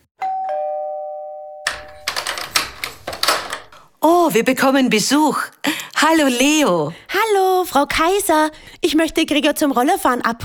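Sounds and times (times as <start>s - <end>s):
two-tone front door doorbell chime: 0.2s - 2.2s
clattering clicks: 1.7s - 3.9s
speech: 4.0s - 10.4s.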